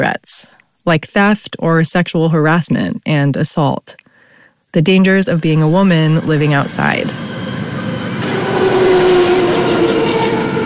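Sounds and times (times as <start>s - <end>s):
speech: 0.0s - 4.0s, 4.7s - 7.5s
BART train rolling along elevated tracks: 5.2s - 10.6s
metallic whine: 5.3s - 10.6s.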